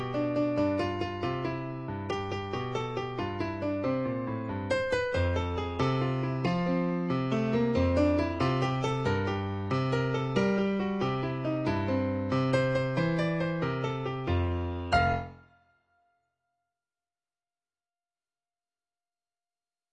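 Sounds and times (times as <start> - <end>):
piano playing a dance tune: 0.0 - 15.7.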